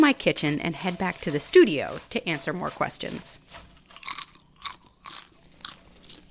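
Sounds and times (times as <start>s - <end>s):
speech: 0.1s - 3.7s
chewing crunchy popcorn: 3.8s - 6.2s.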